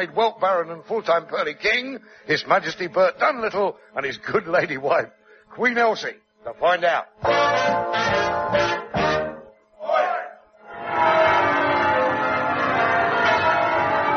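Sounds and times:
speech: 0.0s - 9.1s
alarm clock bell ringing: 10.7s - 14.1s.

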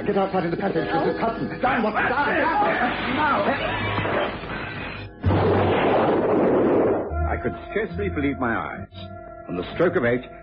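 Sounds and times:
speech: 0.1s - 4.5s, 7.3s - 10.4s
bomb explosion: 5.2s - 7.6s.

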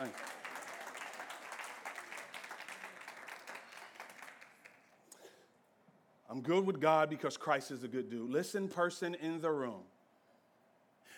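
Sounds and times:
speech: 0.0s - 0.3s, 6.3s - 10.0s
crowd applause: 0.0s - 4.9s.

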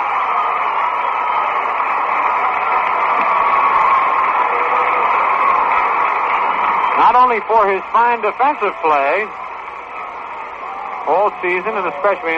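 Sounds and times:
crowd applause at baseball game: 0.0s - 12.3s
speech: 7.2s - 9.4s, 11.1s - 12.3s.

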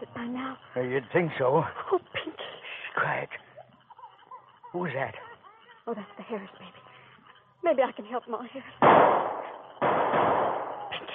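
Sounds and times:
speech: 0.2s - 2.1s, 4.7s - 5.3s, 5.9s - 6.8s, 7.6s - 10.3s
rifle shots: 8.8s - 11.1s.

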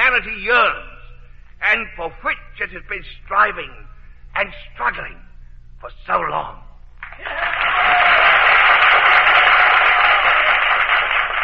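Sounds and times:
speech: 0.2s - 0.9s, 1.6s - 5.2s, 5.8s - 6.6s, 7.2s - 8.0s
applause in the assembly chamber: 7.0s - 11.4s.

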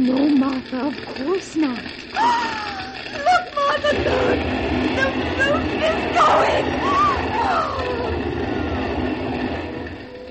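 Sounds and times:
speech: 0.0s - 8.3s
fire engine approaching: 0.0s - 10.2s.

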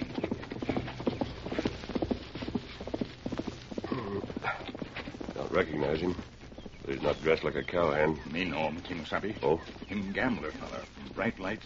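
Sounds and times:
horse hoofbeats on a dirt trail: 0.0s - 11.6s
speech: 5.6s - 11.6s.

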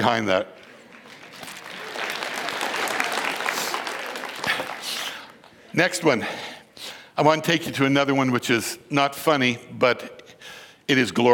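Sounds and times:
speech: 0.0s - 0.6s, 5.7s - 6.5s, 7.2s - 10.2s, 10.9s - 11.3s
crowd clapping: 0.6s - 5.6s.

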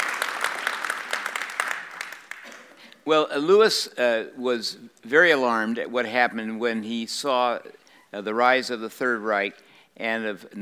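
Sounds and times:
audience applause: 0.0s - 2.7s
speech: 3.1s - 10.6s.

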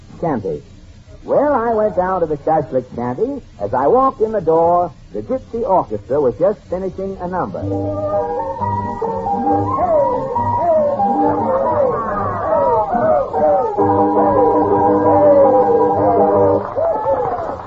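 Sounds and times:
speech: 0.2s - 9.6s
noisy restaurant diners chattering: 9.4s - 17.6s.

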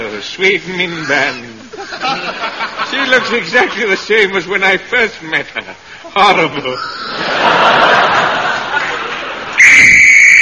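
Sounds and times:
speech: 0.2s - 8.2s
laughter: 0.8s - 4.5s, 5.2s - 9.6s
danger whistle warning of blasting: 9.6s - 10.4s.

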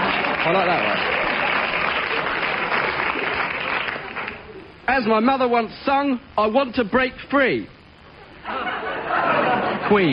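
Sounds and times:
audience applause: 0.0s - 4.6s
speech: 0.4s - 1.1s, 5.0s - 7.8s, 9.9s - 10.1s
laughter: 8.2s - 10.1s.

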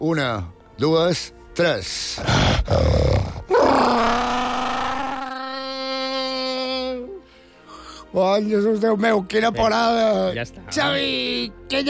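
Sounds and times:
speech: 0.0s - 4.2s, 8.1s - 11.8s
person imitating a tyrannosaurus roar: 2.2s - 7.0s.

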